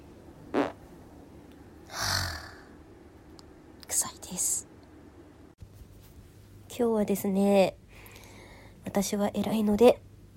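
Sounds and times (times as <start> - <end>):
fart from someone with an upset stomach: 0.5 - 0.8
speech: 4.0 - 4.6, 6.8 - 7.8, 9.0 - 10.0.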